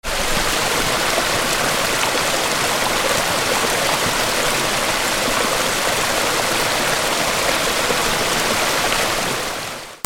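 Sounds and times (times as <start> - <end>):
water: 0.0 - 10.0.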